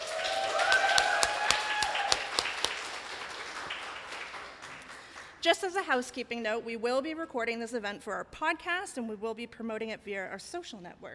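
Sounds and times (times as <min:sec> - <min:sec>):
audience applause: 0:00.0 - 0:05.4
speech: 0:05.4 - 0:11.1.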